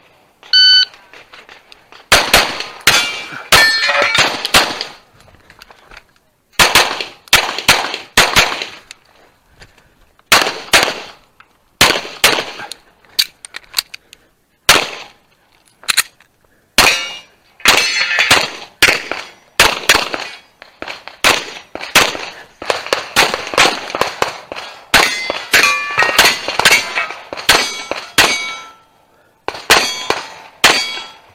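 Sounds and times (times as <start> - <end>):
electronic start beep at a shooting competition stage: 0.5 - 0.9
gunshots at a shooting competition stage: 2.1 - 5.0, 6.6 - 8.8, 10.3 - 11.2, 11.8 - 12.7, 14.7 - 15.2, 16.8 - 28.8, 29.5 - 31.3.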